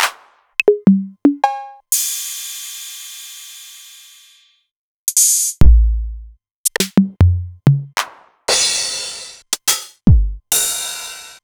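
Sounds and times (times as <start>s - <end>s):
Novation Drumstation drum machine: 0.0s - 1.8s, 5.6s - 11.4s.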